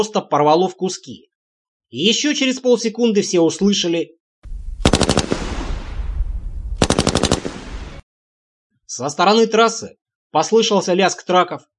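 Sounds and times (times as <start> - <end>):
speech: 0.0 - 1.3, 1.9 - 4.2, 9.0 - 11.7
machine gun fire: 4.8 - 8.0.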